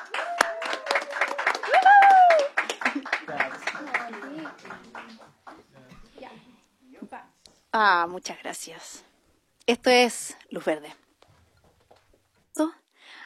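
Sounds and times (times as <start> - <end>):
audience applause: 0.0 - 5.8
speech: 7.8 - 9.1, 9.7 - 11.0, 12.6 - 12.8.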